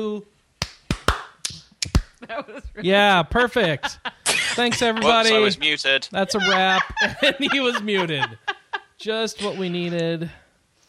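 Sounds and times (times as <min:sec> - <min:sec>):
speech: 0:00.0 - 0:00.4, 0:02.2 - 0:10.4
group clapping in unison: 0:00.6 - 0:02.2
laughter: 0:02.2 - 0:10.3.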